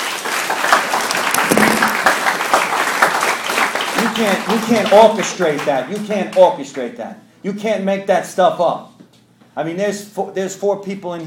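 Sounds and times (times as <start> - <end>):
crowd applauding: 0.0 - 6.8
speech: 4.2 - 8.9, 9.6 - 11.2.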